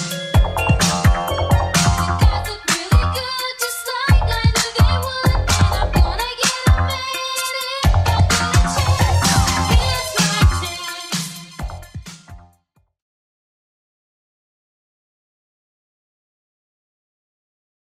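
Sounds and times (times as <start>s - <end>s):
80s Redrum drum machine beat: 0.0s - 12.5s.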